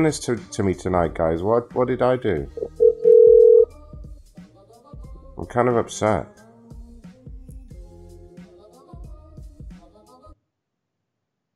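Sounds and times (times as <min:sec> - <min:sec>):
speech: 0:00.0 - 0:02.7, 0:05.4 - 0:06.4
telephone tone as a call is placed: 0:02.6 - 0:03.7.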